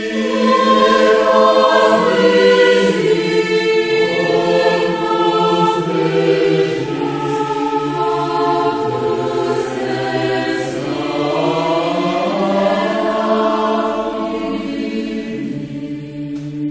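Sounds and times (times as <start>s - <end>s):
choir singing a chorale: 0.0s - 16.7s.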